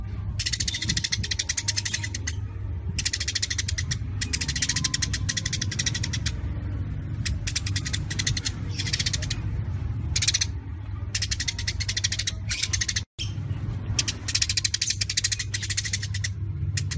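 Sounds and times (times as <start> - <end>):
Eurasian tree sparrows chattering: 0.3 - 16.9.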